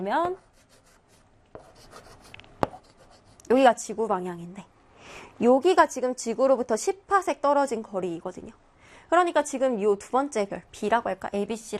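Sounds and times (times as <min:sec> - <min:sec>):
speech: 0:00.0 - 0:00.5, 0:03.5 - 0:04.7, 0:05.4 - 0:11.7
pen strokes on a board: 0:00.2 - 0:03.5.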